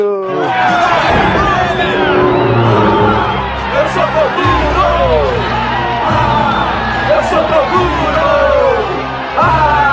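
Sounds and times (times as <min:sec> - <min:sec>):
crowd cheering Team Toguro's entrance at the spiritual tournament: 0:00.3 - 0:09.9.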